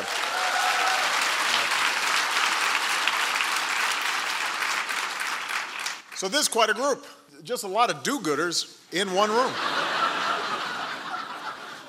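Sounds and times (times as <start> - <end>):
audience applause: 0.0 - 6.2
speech: 6.2 - 9.8
laughter: 9.3 - 11.8.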